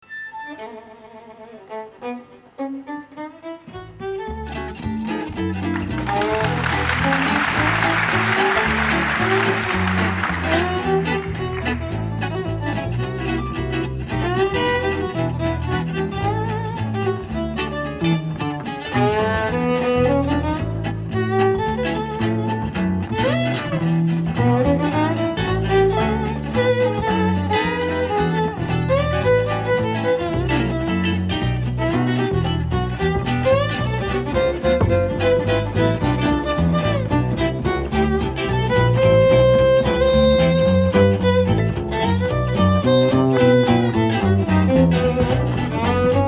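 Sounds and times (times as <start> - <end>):
jazz music: 3.7 - 23.0, 23.6 - 46.2.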